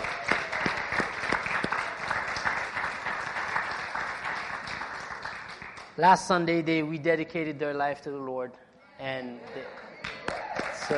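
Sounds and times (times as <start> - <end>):
church congregation clapping in welcome: 0.0 - 6.4, 9.4 - 10.9
speech: 6.0 - 9.8.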